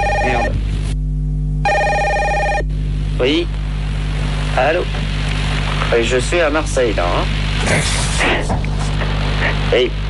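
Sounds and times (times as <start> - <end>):
telephone ringing in a client's home: 0.0 - 0.6, 1.6 - 2.7
low hum: 0.0 - 10.0
speech: 4.6 - 5.0, 5.9 - 8.7, 9.4 - 10.0.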